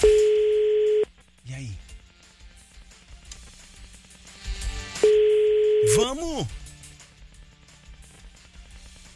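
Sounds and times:
faint telephone line noise on an outgoing call: 0.0s - 1.1s, 5.0s - 6.1s
speech: 6.1s - 6.6s.

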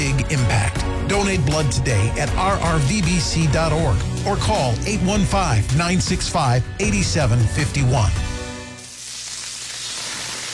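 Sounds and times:
speech: 1.1s - 8.3s
smash burgers sizzling on a grill: 8.3s - 10.5s.

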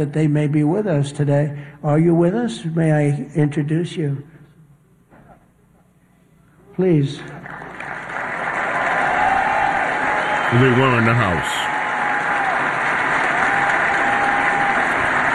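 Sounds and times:
speech: 0.0s - 4.4s, 6.8s - 7.6s, 10.5s - 11.7s
audience applause: 7.2s - 15.3s.

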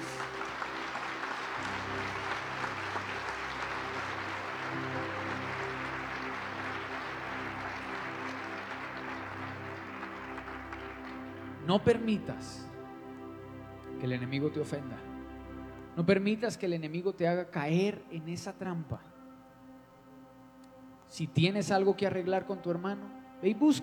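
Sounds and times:
applause: 0.0s - 12.8s
speech: 11.7s - 12.7s, 14.0s - 15.1s, 16.0s - 19.1s, 21.1s - 23.8s.

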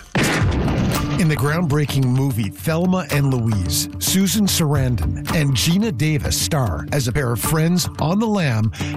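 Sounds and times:
gunshot fired at a police radio in the film Thelma and Louise: 0.1s - 1.3s
speech: 1.2s - 8.9s.

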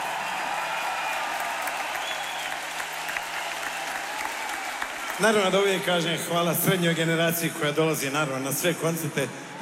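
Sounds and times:
concert audience applause: 0.0s - 6.3s
speech: 5.2s - 9.5s.

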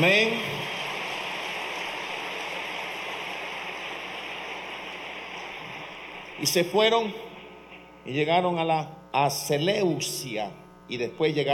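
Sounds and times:
speech: 0.0s - 0.6s, 6.4s - 7.3s, 8.0s - 11.5s
audience applause: 0.0s - 7.2s.

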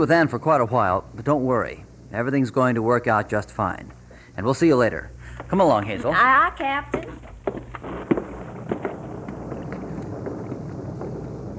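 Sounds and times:
speech: 0.0s - 7.2s
distant thunder: 7.0s - 11.5s.

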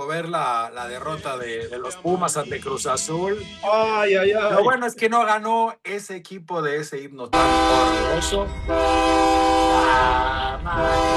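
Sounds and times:
speech: 0.0s - 11.1s
departing train horn sound effect: 7.3s - 11.1s
low rumbling of rail cars: 7.4s - 11.1s.

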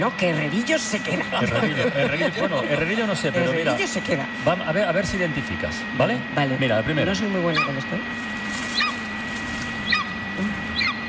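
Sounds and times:
speech: 0.0s - 8.3s
steady low hum: 0.0s - 11.0s
laughter: 1.1s - 3.8s
golden eagle calling: 7.4s - 7.9s, 8.5s - 11.0s.

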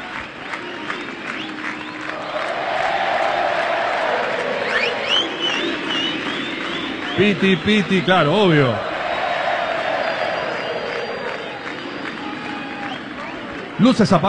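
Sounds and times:
large concert crowd chanting and singing: 0.0s - 12.6s
whistles: 0.1s - 2.4s, 4.4s - 8.4s, 9.1s - 13.7s
speech: 7.2s - 8.9s, 13.8s - 14.2s.

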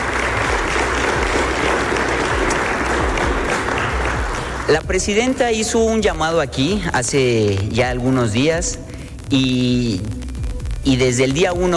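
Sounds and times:
audience applause: 0.0s - 4.8s
speech: 4.7s - 10.2s, 10.8s - 11.7s.

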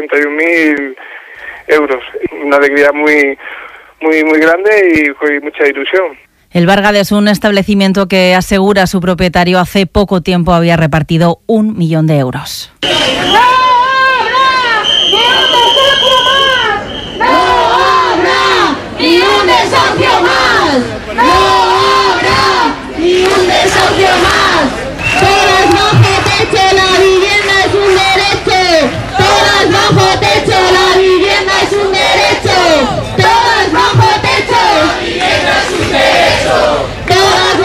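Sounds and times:
speech: 0.0s - 13.5s
protesters chanting slogans at a housing rally outside a government delegation: 12.8s - 37.6s.

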